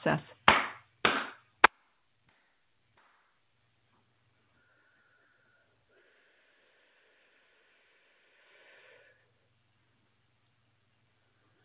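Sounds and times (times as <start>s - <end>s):
sharp hand claps: 0.5s - 3.4s.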